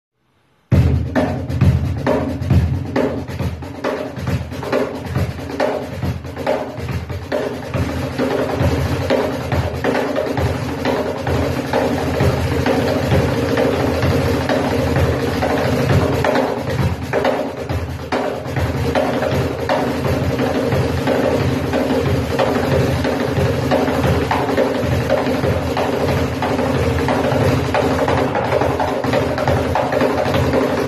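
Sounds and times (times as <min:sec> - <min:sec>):
cajon drumming: 0:00.7 - 0:30.8.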